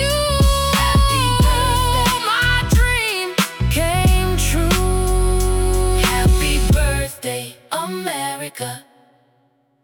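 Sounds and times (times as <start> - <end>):
birthday party rapping: 0.0 - 7.5.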